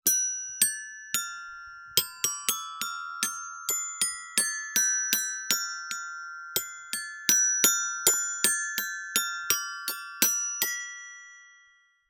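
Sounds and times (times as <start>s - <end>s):
child playing toy glockenspiel: 0.0s - 12.0s.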